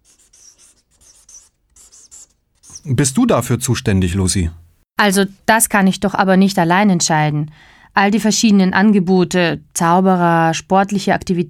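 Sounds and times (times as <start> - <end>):
pen scratching on paper writing a list: 0.0 - 3.2
speech: 2.8 - 11.4.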